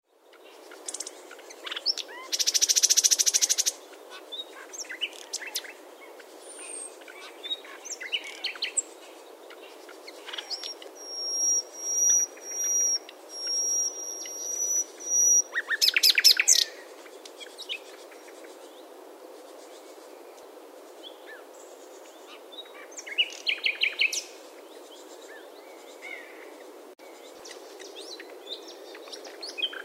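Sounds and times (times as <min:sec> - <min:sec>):
common nightingale song: 0:00.1 - 0:29.8.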